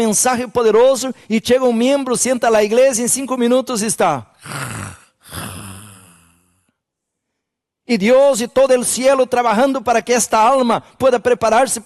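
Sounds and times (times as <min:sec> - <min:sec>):
speech: 0:00.0 - 0:05.5, 0:07.9 - 0:11.8
preacher imitating snoring: 0:04.4 - 0:06.7.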